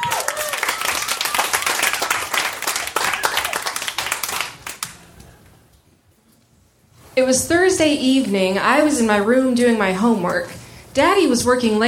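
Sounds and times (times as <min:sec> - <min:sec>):
audience applause at a comedy show: 0:00.0 - 0:04.9
speech: 0:07.2 - 0:11.8.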